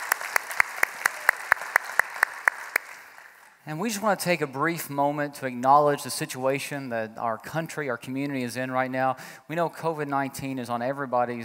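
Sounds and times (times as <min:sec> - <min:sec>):
church audience applause: 0:00.0 - 0:03.6
noise: 0:00.0 - 0:11.4
speech: 0:03.6 - 0:11.4.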